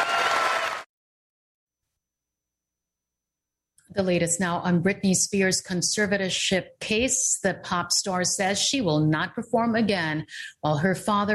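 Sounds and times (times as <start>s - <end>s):
large outdoor golf tournament crowd applauding and cheering: 0.0s - 0.9s
speech: 3.9s - 11.3s.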